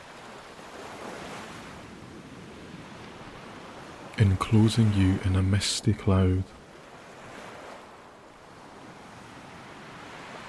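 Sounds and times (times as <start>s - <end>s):
ocean surf and sea spray breaking: 0.0s - 10.4s
wind: 0.0s - 10.4s
speech: 4.2s - 6.6s.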